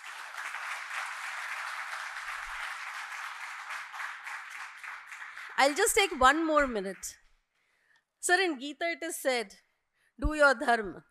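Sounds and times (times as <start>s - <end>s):
audience applause: 0.0s - 6.3s
speech: 5.6s - 7.2s, 8.2s - 9.6s, 10.2s - 11.0s.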